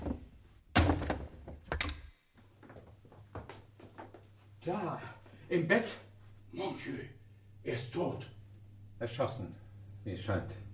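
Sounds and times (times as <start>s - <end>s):
door bolted from the inside being forced open: 0.0s - 2.0s
wooden knocks and rattles: 0.0s - 2.0s
speech: 4.7s - 8.4s, 9.0s - 10.6s.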